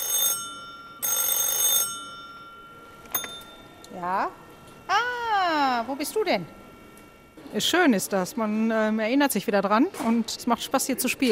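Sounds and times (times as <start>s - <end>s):
old telephone bell ringing: 0.0s - 4.1s
speech: 4.0s - 6.6s, 7.5s - 11.3s.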